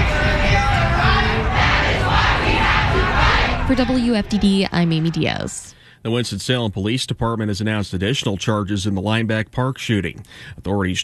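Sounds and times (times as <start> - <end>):
massive crowd marching and chanting through downtown Raleigh: 0.0 - 5.5
speech: 3.7 - 11.0.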